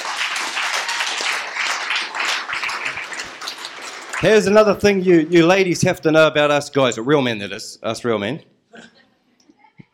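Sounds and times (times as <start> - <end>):
audience round of applause: 0.0 - 5.4
speech: 4.2 - 8.9.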